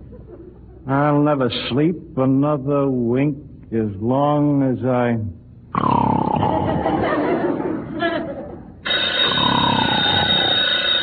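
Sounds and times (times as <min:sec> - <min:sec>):
laughter: 0:00.0 - 0:00.9, 0:06.4 - 0:08.8
speech: 0:00.3 - 0:06.8
telephone bell ringing: 0:08.8 - 0:11.0.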